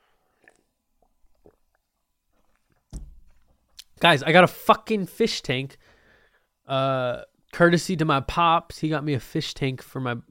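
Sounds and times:
person sipping water: 0.2 - 4.0
speech: 4.0 - 5.9, 6.7 - 10.2.

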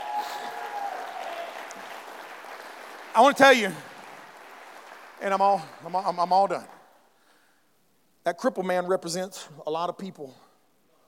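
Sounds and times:
audience applause: 0.0 - 6.8
speech: 3.2 - 3.9, 5.2 - 6.8, 8.2 - 10.4.

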